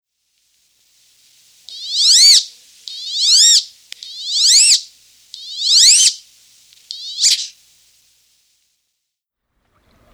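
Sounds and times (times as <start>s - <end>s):
Wood duck whistled calls: 1.6s - 7.6s.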